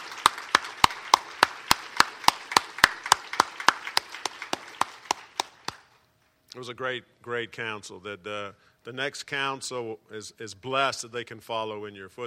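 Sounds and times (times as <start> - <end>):
audience applause for council members: 0.0 - 5.9
sharp evenly spaced claps: 0.0 - 6.0
speech: 6.6 - 12.2.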